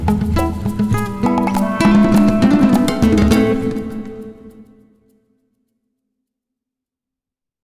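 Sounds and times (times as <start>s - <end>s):
guitar playing: 0.2s - 4.9s.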